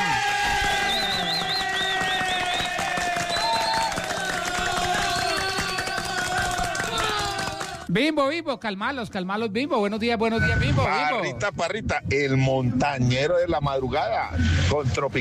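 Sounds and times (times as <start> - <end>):
crowd clapping: 0.0 - 7.9
crowd shouting voices: 0.0 - 7.9
shrill whistles: 0.5 - 4.1
speech: 7.9 - 15.2.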